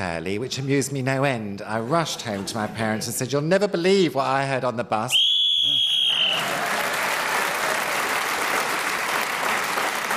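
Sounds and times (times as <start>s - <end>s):
speech: 0.0s - 5.3s
shrill whistle blown to end a turn: 5.1s - 6.4s
audience applause: 5.7s - 10.1s.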